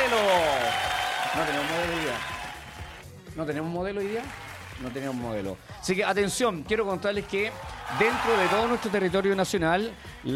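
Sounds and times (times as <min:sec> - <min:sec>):
audience clapping: 0:00.0 - 0:03.1, 0:04.0 - 0:05.6, 0:07.6 - 0:09.6
speech: 0:03.4 - 0:10.3.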